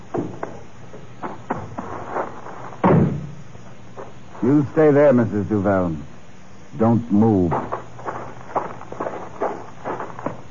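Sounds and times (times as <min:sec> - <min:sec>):
door thumping as it swings open: 0:02.8 - 0:03.4
speech: 0:04.4 - 0:06.1, 0:06.7 - 0:07.7.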